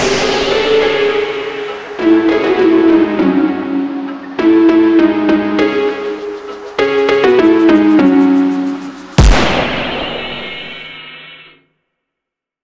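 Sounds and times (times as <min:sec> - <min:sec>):
phonk music: 0:00.0 - 0:09.7.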